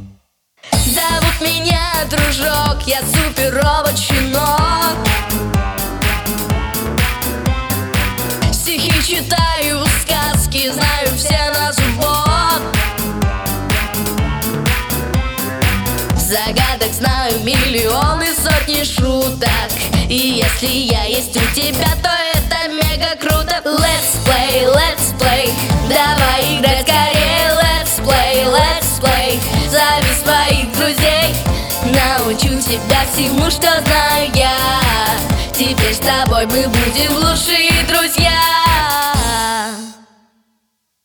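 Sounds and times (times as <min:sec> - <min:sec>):
vocals: 0:00.7 - 0:40.3.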